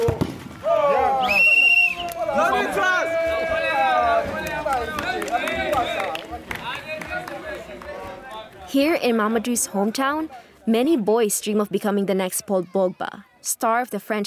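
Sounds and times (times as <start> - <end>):
neighborhood crowd cheering at a goal: 0.0 - 10.2
speech: 8.8 - 14.2.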